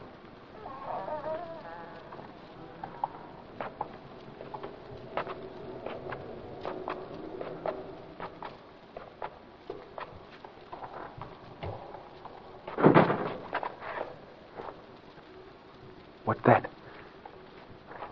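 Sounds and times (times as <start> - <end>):
light patter: 0.0 - 18.1
soft shuffling footsteps: 1.6 - 16.1, 16.9 - 18.1
door slamming shut: 12.8 - 13.4.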